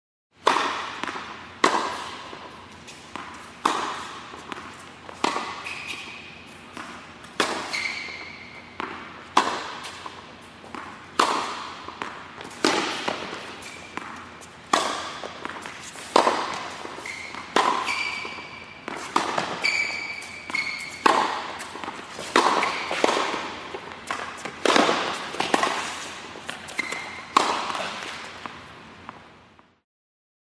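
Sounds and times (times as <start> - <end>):
tennis: 0.4 - 29.8.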